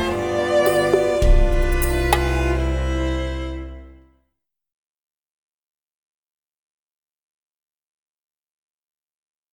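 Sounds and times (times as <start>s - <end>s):
instrumental music: 0.0s - 4.1s.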